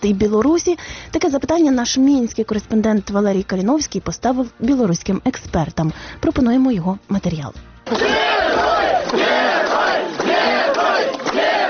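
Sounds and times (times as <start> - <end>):
speech: 0.0 - 9.2
large crowd shouting greetings and chanting at a bus station: 7.9 - 11.6.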